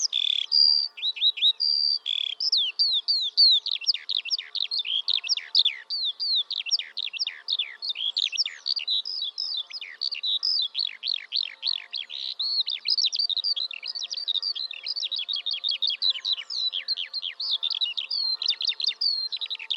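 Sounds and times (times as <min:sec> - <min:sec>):
birds chirping and twittering: 0:00.0 - 0:19.7.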